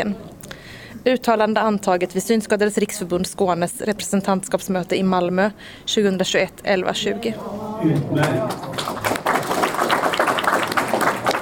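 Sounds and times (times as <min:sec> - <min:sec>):
speech: 0:00.0 - 0:00.3, 0:01.0 - 0:08.9
applause after adopting a statement: 0:07.9 - 0:11.3.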